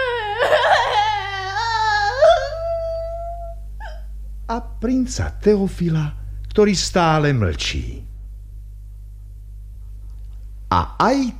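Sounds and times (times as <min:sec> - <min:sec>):
person crying, sobbing: 0:00.0 - 0:04.1
speech: 0:04.5 - 0:08.1, 0:10.7 - 0:11.3.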